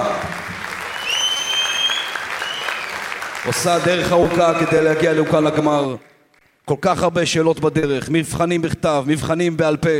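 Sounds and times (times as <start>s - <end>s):
audience clapping for a contestant at a quiz competition final: 0.0s - 6.9s
piercing whistle: 0.8s - 3.0s
speech: 3.5s - 6.1s, 6.7s - 9.9s.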